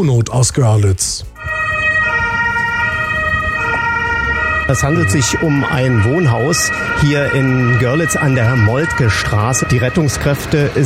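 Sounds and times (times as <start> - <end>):
speech: 0.0 - 1.4, 4.7 - 10.8
emergency vehicle siren at a house collapse scene: 1.4 - 10.8
idling engine: 2.3 - 10.8.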